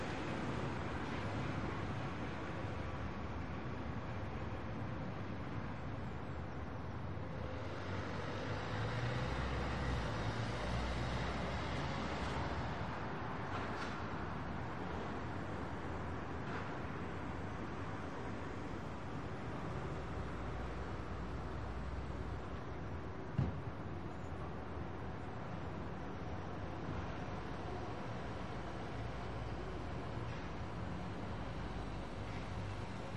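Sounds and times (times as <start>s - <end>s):
city noise in Amsterdam De Pijp: 0.0s - 33.1s
morning traffic in Amsterdam De Pijp: 0.0s - 33.1s.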